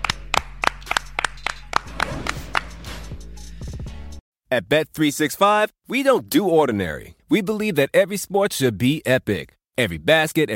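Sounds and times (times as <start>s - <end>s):
sharp hand claps: 0.0s - 2.8s
speech: 4.5s - 10.5s.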